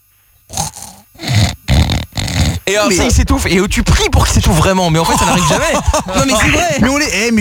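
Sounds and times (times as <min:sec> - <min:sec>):
person imitating a man snoring: 0:00.5 - 0:02.8
speech: 0:02.7 - 0:07.3
laughter: 0:04.2 - 0:07.1.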